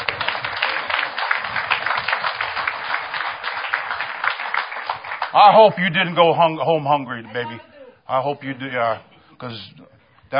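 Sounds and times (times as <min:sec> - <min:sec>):
audience clapping: 0:00.0 - 0:06.3
speech: 0:05.3 - 0:10.3.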